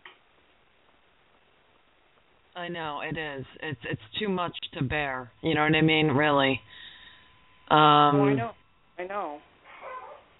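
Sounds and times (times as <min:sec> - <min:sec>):
speech: 0:02.6 - 0:06.8, 0:07.7 - 0:09.5
small dog yelping and whimpering: 0:09.6 - 0:10.3.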